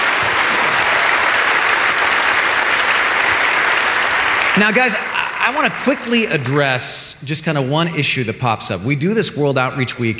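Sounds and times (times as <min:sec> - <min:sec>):
audience applauding to welcome panelists to the stage: 0:00.0 - 0:08.0
speech: 0:04.6 - 0:10.1.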